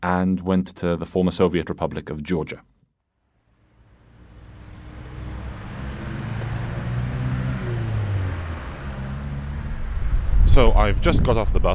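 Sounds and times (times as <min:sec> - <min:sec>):
speech: 0:00.0 - 0:02.8, 0:10.6 - 0:11.7
traffic noise beside a main road in Tbilisi: 0:03.6 - 0:11.0.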